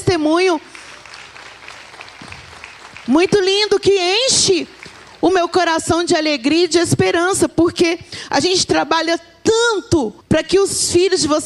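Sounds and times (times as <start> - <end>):
speech: 0.2 - 0.7, 3.1 - 11.4
audience applause: 0.7 - 5.4.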